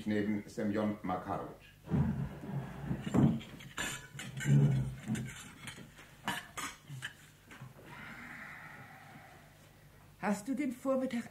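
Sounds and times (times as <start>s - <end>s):
speech: 0.0s - 2.3s, 4.4s - 5.4s, 10.2s - 11.2s
dishes and silver cutlery clattering at dinner: 3.0s - 7.2s.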